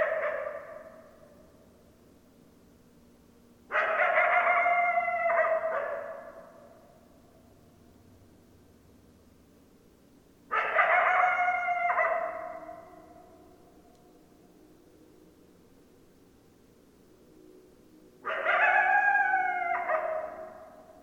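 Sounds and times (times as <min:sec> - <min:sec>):
Coyotes howling and yipping: 0:00.0 - 0:01.4, 0:03.7 - 0:06.9, 0:10.5 - 0:13.6, 0:18.2 - 0:21.0.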